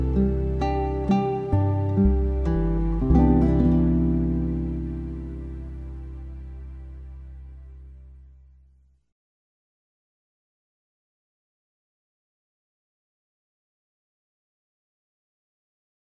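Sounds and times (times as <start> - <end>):
acoustic praise instrumental music: 0.0 - 7.3.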